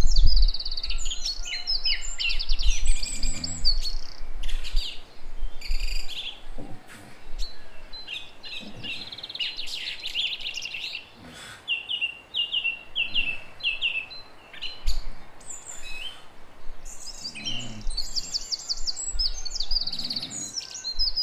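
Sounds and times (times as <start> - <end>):
song thrush singing in Durenne: 0.0 - 21.2.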